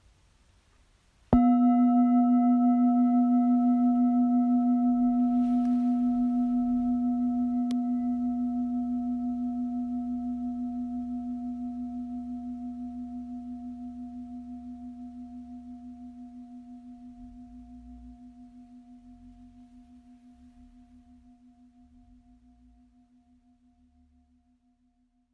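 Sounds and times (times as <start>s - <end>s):
Tibetan singing bowl: 1.3s - 23.9s.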